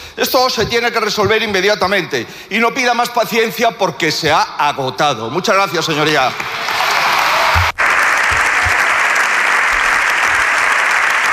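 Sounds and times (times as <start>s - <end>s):
speech: 0.2s - 6.6s
long applause in parliament: 6.3s - 11.3s.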